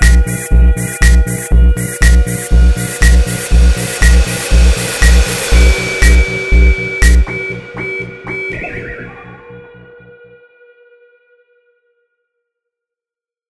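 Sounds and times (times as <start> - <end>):
sine wave tone: 0.0 - 9.6.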